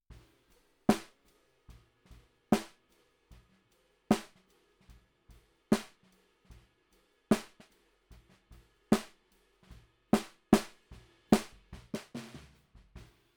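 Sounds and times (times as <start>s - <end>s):
bottom snare drum: 0.9s - 1.2s, 2.5s - 2.8s, 4.1s - 4.4s, 5.7s - 6.1s, 7.3s - 7.7s, 8.9s - 9.2s, 10.2s - 13.1s.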